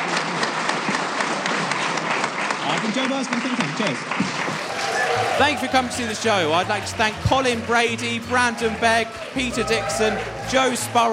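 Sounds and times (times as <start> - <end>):
audience applause for panel members: 0.0 - 11.1
speech: 2.9 - 11.1.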